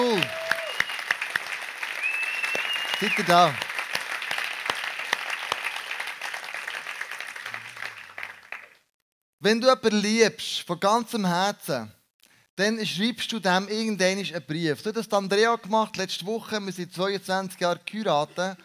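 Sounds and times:
audience applause: 0.0s - 8.9s
speech: 3.0s - 3.7s, 9.4s - 12.0s, 12.6s - 18.6s.

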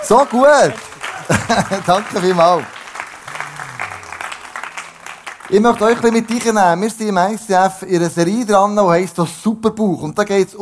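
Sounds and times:
laughter: 0.0s - 4.9s
audience applause: 0.0s - 6.9s
speech: 0.1s - 2.8s, 5.5s - 10.6s.

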